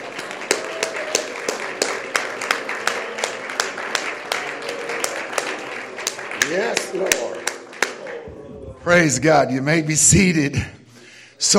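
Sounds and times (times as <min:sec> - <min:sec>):
audience clapping hands: 0:00.0 - 0:08.4
speech: 0:06.5 - 0:07.4, 0:08.9 - 0:10.8.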